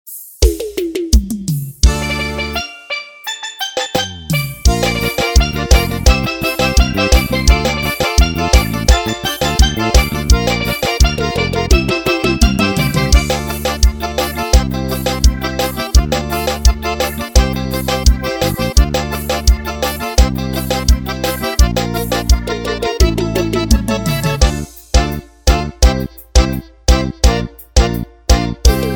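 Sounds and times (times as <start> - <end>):
pisadinha music playback: 0.1 - 28.9.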